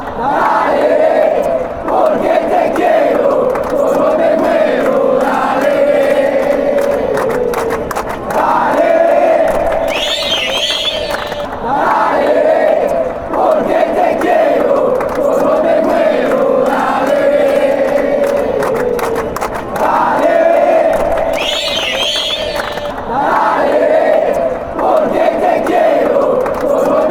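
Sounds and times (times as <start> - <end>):
chanting in Colombia: 0.0 - 27.0.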